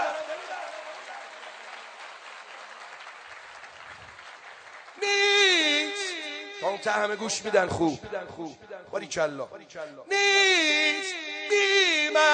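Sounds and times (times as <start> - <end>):
audience clapping: 0.0 - 6.5
speech: 6.8 - 12.3.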